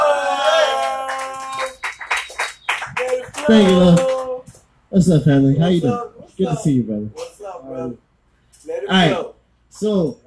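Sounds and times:
audience applause: 0:00.0 - 0:04.3
speech: 0:03.5 - 0:04.1, 0:04.9 - 0:10.2.

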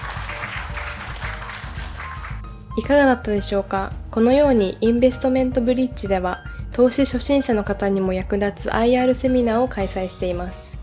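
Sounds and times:
audience applause at an investor relations seminar: 0:00.0 - 0:02.4
speech: 0:02.8 - 0:10.7.

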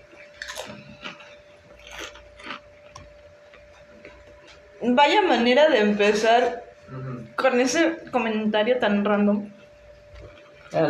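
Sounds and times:
person chewing an egg tart: 0:00.0 - 0:04.7, 0:09.6 - 0:10.8
speech: 0:04.8 - 0:09.6.

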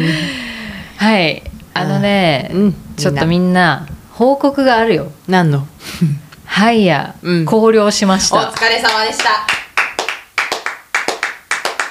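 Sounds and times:
speech: 0:01.0 - 0:09.6
hands clapping: 0:08.4 - 0:11.8.

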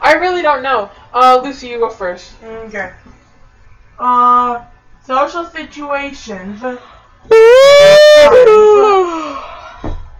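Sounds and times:
speech: 0:00.1 - 0:03.1, 0:04.0 - 0:08.8
person yawning into microphone: 0:07.3 - 0:09.4.

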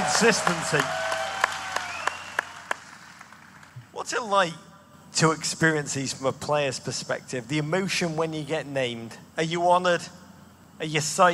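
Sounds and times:
audience applause: 0:00.0 - 0:03.8
speech: 0:00.2 - 0:01.2, 0:04.1 - 0:10.2, 0:10.8 - 0:11.3.

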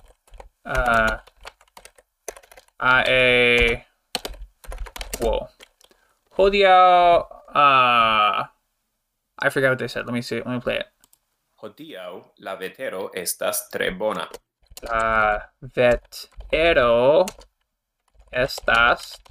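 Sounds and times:
typing on a computer keyboard: 0:00.0 - 0:06.0, 0:14.2 - 0:15.2, 0:15.8 - 0:19.2
speech: 0:00.6 - 0:01.2, 0:02.8 - 0:03.8, 0:06.4 - 0:08.5, 0:09.4 - 0:10.9, 0:11.7 - 0:17.5, 0:18.3 - 0:19.2.

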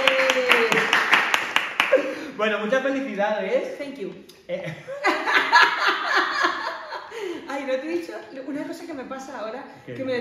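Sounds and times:
sharp hand claps: 0:00.0 - 0:02.2
speech: 0:02.4 - 0:06.2, 0:07.2 - 0:10.1
laughter: 0:04.7 - 0:07.3.

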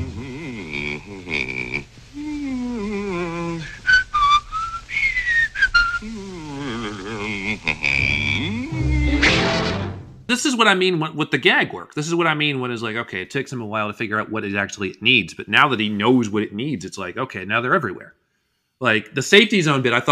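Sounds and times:
cartoon bull humming to himself: 0:00.0 - 0:10.0
speech: 0:10.5 - 0:18.2, 0:18.8 - 0:20.0.

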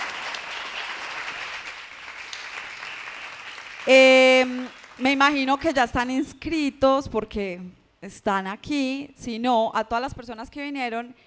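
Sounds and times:
audience applause: 0:00.0 - 0:05.5
speech: 0:03.8 - 0:11.2.

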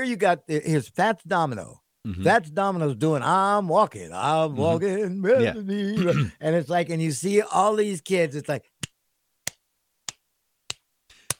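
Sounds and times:
speech: 0:00.0 - 0:08.7
rhythmic hand claps demonstrated by speaker: 0:08.8 - 0:11.3.

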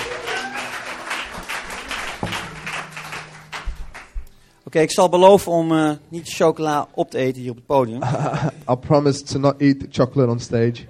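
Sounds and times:
audience applauding a band: 0:00.0 - 0:04.2
speech: 0:04.7 - 0:10.8
laughter: 0:07.9 - 0:08.7.

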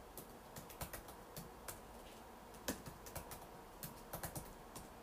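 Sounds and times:
typing on a computer keyboard: 0:00.1 - 0:01.8, 0:02.5 - 0:04.9.

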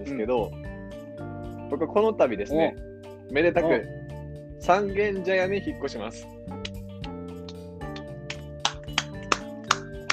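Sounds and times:
speech: 0:00.0 - 0:00.6, 0:01.7 - 0:04.0, 0:04.6 - 0:06.4
hand clapping: 0:06.5 - 0:10.1.

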